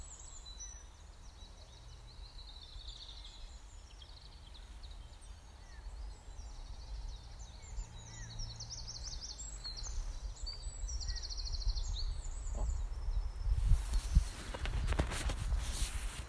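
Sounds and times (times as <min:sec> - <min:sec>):
bird song with high trilled and twittering phrases in a meadow: 0:00.0 - 0:16.2.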